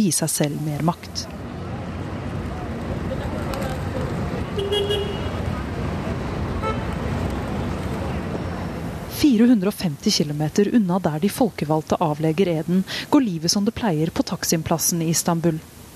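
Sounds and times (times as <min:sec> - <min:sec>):
speech: 0:00.0 - 0:01.5, 0:09.2 - 0:15.8
traffic rumbling on Taksim Square in Istanbul: 0:00.0 - 0:15.9
yellow taxi horn toot on Taksim Square in Istanbul: 0:04.6 - 0:05.4, 0:06.6 - 0:06.9.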